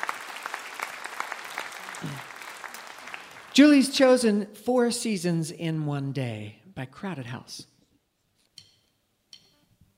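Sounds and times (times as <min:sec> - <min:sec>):
audience applause: 0:00.0 - 0:03.6
speech: 0:03.6 - 0:07.7.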